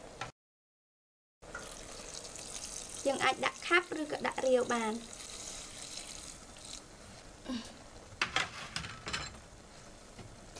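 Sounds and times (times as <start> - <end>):
water being poured into a cooking pot: 1.5 - 6.9
speech: 3.0 - 5.2, 7.5 - 7.7.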